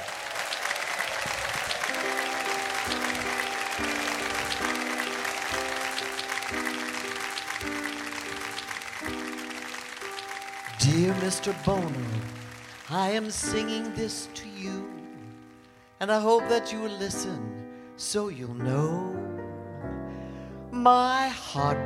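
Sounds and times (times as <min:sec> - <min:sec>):
audience applause welcoming a singer at a live show: 0:00.0 - 0:15.6
band playing a repeated melodic figure: 0:01.7 - 0:15.5
speech: 0:11.1 - 0:15.0, 0:16.0 - 0:19.1, 0:20.8 - 0:21.8.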